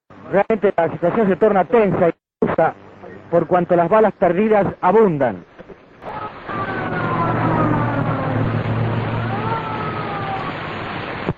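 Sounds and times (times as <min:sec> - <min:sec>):
speech: 0:00.3 - 0:05.5
dense loud rumble of traffic: 0:05.5 - 0:11.3
sirens of several ambulances wailing during a shooting: 0:06.0 - 0:10.9
steady low drone: 0:06.0 - 0:11.3.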